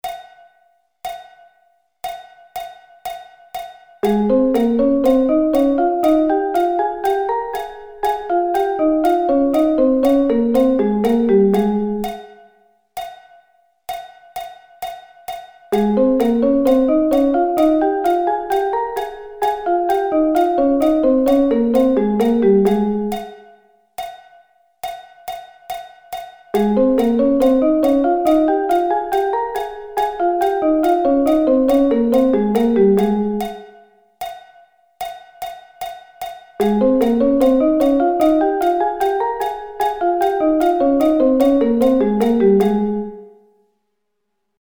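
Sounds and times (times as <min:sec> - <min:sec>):
A-flat thirds: 0:04.0 - 0:12.4, 0:15.8 - 0:23.5, 0:26.6 - 0:33.8, 0:36.6 - 0:43.3.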